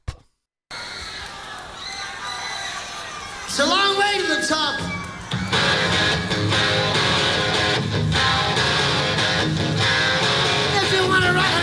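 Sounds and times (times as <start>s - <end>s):
shrill whistles: 0.7s - 7.3s
crowd cheering and shouting at live rock concert: 0.7s - 11.6s
speech: 3.6s - 5.0s.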